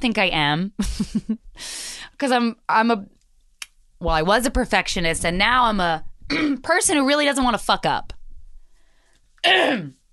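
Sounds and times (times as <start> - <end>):
speech: 0.0 - 3.2, 4.0 - 8.1, 9.4 - 10.0
person coughing away from the microphone: 6.3 - 6.6, 9.4 - 10.0.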